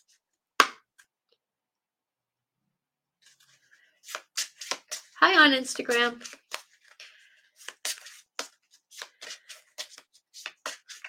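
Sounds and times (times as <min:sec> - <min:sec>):
tarot cards handled and drawn from a deck: 0:03.2 - 0:11.0
speech: 0:05.2 - 0:06.4.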